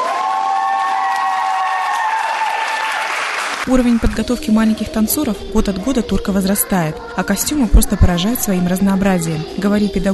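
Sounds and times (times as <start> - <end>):
faint crowd cheering: 0.0 - 3.5
large audience applauding loudly: 0.0 - 3.7
speech: 3.7 - 10.1.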